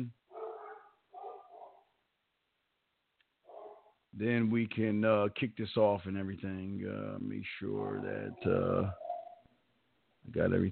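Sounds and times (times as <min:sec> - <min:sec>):
speech: 0:00.0 - 0:00.2, 0:04.2 - 0:09.0, 0:10.3 - 0:10.7
dogs barking: 0:00.3 - 0:01.9, 0:03.5 - 0:04.0, 0:07.6 - 0:09.5.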